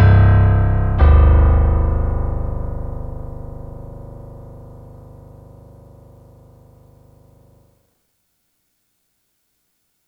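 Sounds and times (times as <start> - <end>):
algorithmic composition of subharmonics for a tuning survey: 0.0 - 6.6.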